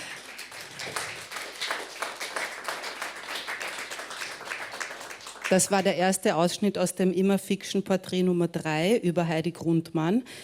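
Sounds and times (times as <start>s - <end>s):
applause: 0.0s - 5.9s
speech: 5.5s - 10.4s.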